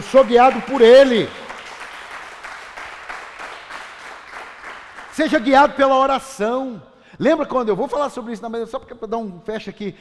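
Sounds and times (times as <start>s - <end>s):
audience applause: 0.0s - 5.2s
speech: 0.1s - 1.4s, 5.2s - 10.0s.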